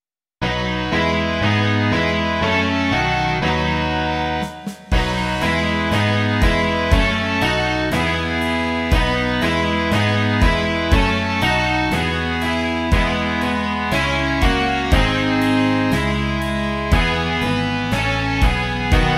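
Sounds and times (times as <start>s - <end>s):
rock music: 0.4s - 19.1s.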